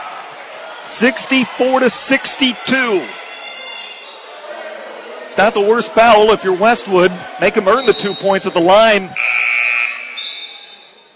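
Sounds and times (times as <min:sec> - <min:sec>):
speech: 0:00.9 - 0:03.2, 0:05.4 - 0:09.4
whistle at the scorer's table: 0:09.2 - 0:11.1.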